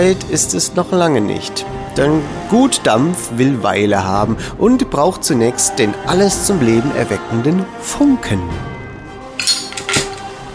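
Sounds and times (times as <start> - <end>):
speech: 0.0 - 8.7
small iron shovel clattering: 9.4 - 10.3.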